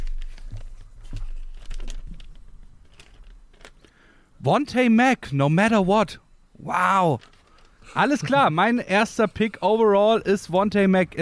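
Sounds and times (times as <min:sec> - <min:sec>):
slip of paper unfolded from a trouser pocket: 0:00.0 - 0:04.0, 0:07.1 - 0:08.4
speech: 0:04.4 - 0:07.3, 0:07.9 - 0:11.1.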